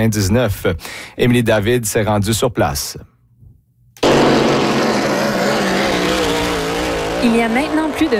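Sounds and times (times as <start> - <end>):
speech: 0.0 - 3.1, 7.2 - 8.1
hydroplane racing boat engines roaring at the Cocagne regatta on the Cocagne River: 4.0 - 8.1.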